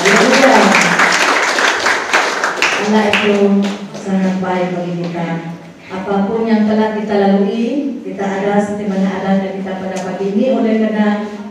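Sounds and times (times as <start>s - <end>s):
crowd applause: 0.0s - 3.2s
speech: 2.9s - 11.4s.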